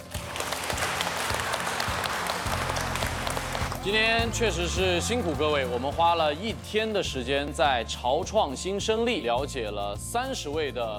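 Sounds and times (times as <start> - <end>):
audience applause: 0.0 - 5.9
speech: 3.8 - 10.9.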